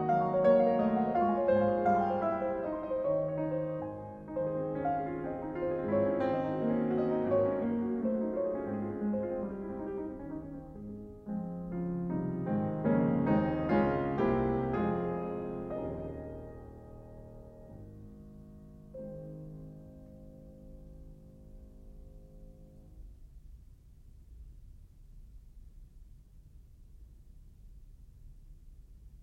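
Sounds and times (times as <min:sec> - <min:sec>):
piano prelude in A flat major: 0:00.0 - 0:23.2.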